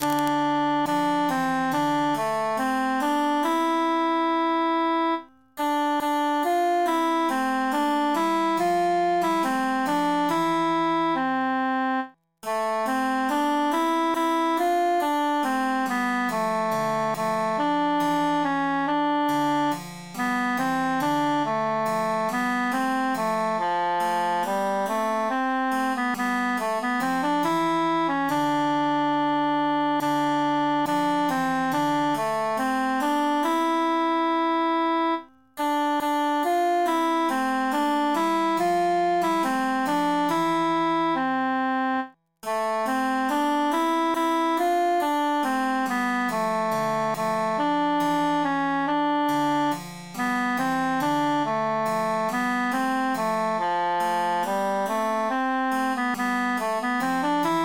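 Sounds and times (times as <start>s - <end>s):
emphasized cantus melody: 0.0s - 57.6s.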